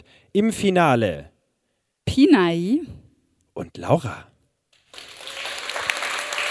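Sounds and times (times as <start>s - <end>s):
speech: 0.3s - 1.3s, 2.1s - 3.0s, 3.6s - 4.3s
crowd applause: 4.9s - 6.4s.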